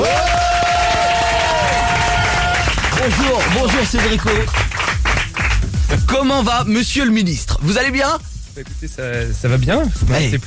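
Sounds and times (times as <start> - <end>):
audience applause and cheering: 0.0 - 6.0
speech: 3.7 - 4.7, 5.9 - 10.4.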